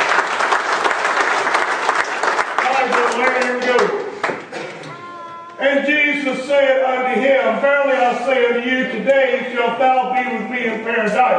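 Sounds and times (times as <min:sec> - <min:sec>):
audience applauding: 0:00.0 - 0:04.5
speech: 0:05.8 - 0:11.3.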